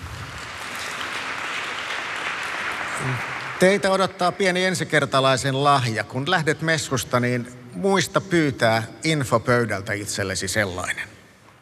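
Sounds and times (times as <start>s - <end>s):
audience applause: 0.0s - 4.5s
speech: 3.0s - 11.2s.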